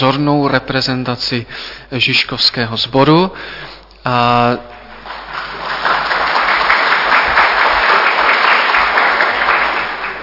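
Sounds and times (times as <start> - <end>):
speech: 0.0 - 4.8
audience applause at a Žižkov fire brigade gathering: 5.0 - 10.2.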